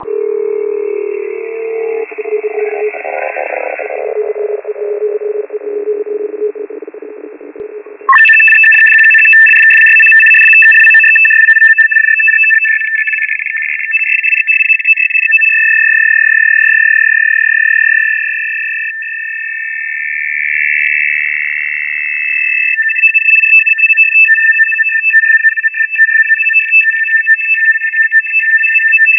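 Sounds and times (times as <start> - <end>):
RTTY radioteletype signal: 0.0 - 29.1.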